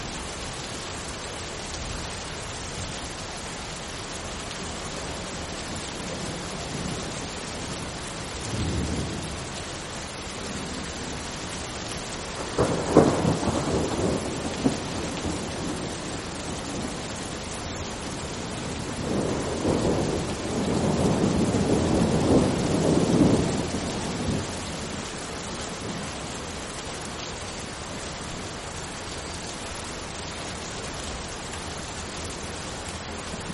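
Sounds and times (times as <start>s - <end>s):
rain falling outside a window: 0.0s - 33.5s
thunder rumbling: 12.4s - 17.0s, 18.3s - 26.4s.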